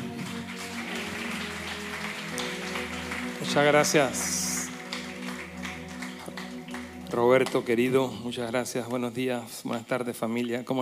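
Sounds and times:
audience applause: 0:00.0 - 0:08.2
sustained musical tone with low bass notes: 0:00.0 - 0:09.1
speech: 0:03.5 - 0:04.4, 0:07.2 - 0:10.8.

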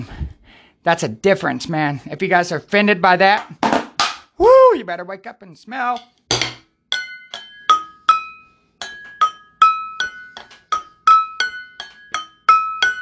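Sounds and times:
speech: 0:00.8 - 0:03.7, 0:04.4 - 0:06.2
glass vases ringing when struck: 0:06.0 - 0:13.0.

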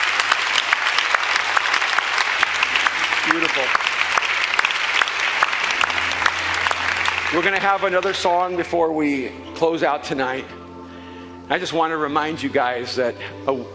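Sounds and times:
audience applause: 0:00.0 - 0:08.7
speech: 0:03.3 - 0:03.9, 0:07.3 - 0:10.6, 0:11.5 - 0:13.7.

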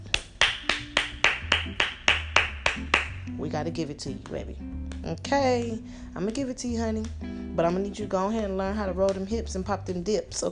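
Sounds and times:
hand clapping: 0:00.0 - 0:03.3, 0:04.1 - 0:07.3, 0:09.0 - 0:10.4
speech: 0:03.4 - 0:10.4.

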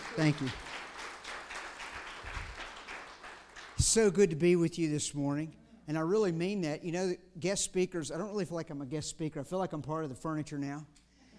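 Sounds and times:
church congregation clapping to welcome a guest speaker: 0:00.0 - 0:04.0
speech: 0:00.2 - 0:00.7, 0:03.8 - 0:11.0.

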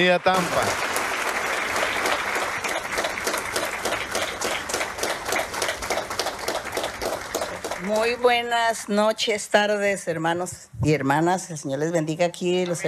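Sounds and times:
speech: 0:00.0 - 0:00.9, 0:07.8 - 0:12.8
loud applause: 0:00.0 - 0:08.2.

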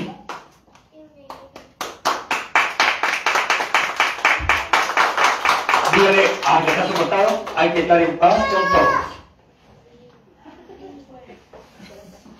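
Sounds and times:
audience clapping: 0:00.0 - 0:08.4
speech: 0:06.0 - 0:09.1.

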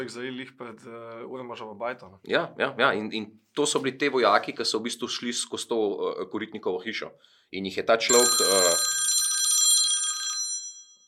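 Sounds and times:
speech: 0:00.0 - 0:08.9
phone ringing with incoming call: 0:08.1 - 0:11.0.

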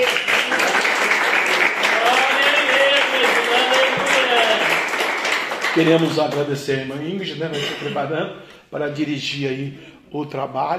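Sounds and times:
audience applauding: 0:00.0 - 0:07.2
speech: 0:05.8 - 0:10.7.

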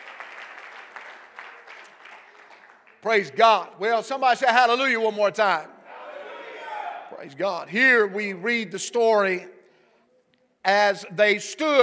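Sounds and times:
audience clapping hands: 0:00.0 - 0:03.6
speech: 0:03.0 - 0:05.7, 0:07.2 - 0:09.6, 0:10.6 - 0:11.8.

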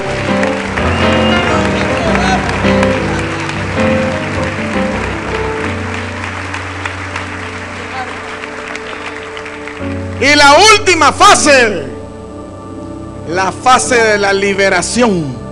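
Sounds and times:
audience applause: 0:00.0 - 0:10.4
speech: 0:10.4 - 0:11.9, 0:13.3 - 0:15.4.

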